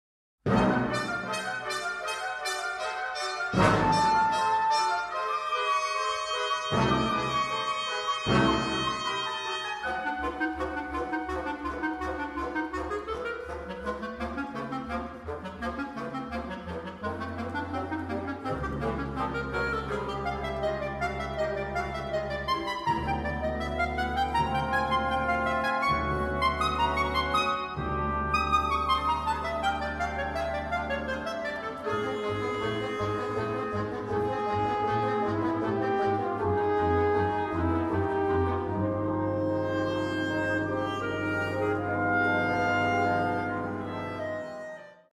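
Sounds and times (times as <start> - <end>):
clarinet concerto with chamber orchestra: 0.5 - 45.1.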